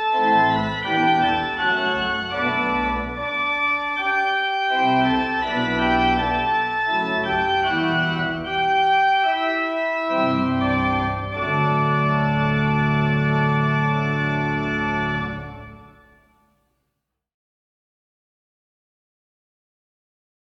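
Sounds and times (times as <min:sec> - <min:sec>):
short chorale preludes: 0:00.1 - 0:16.0.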